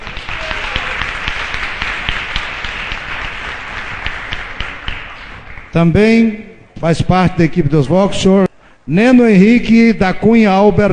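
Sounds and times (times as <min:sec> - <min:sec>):
audience applauding a panelist at a seminar: 0:00.0 - 0:05.8
speech: 0:05.7 - 0:10.9.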